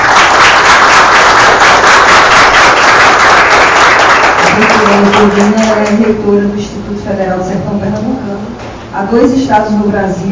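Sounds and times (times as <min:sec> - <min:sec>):
crowd applause: 0:00.0 - 0:05.8
speech: 0:05.2 - 0:08.2, 0:09.0 - 0:10.2.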